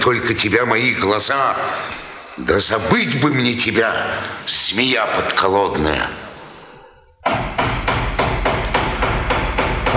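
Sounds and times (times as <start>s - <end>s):
speech: 0.0s - 6.2s
knocking on a door: 7.2s - 9.9s.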